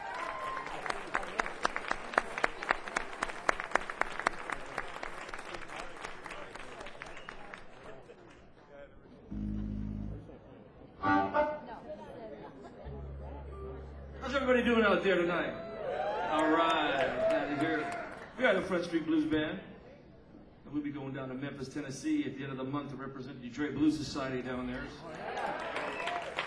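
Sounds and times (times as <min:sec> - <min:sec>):
audience applause welcoming a blues band onstage: 0:00.0 - 0:08.4, 0:15.5 - 0:18.4, 0:25.1 - 0:26.4
audience murmur and chatter: 0:00.8 - 0:16.4
speech: 0:14.9 - 0:15.6, 0:16.4 - 0:19.7, 0:20.8 - 0:25.2.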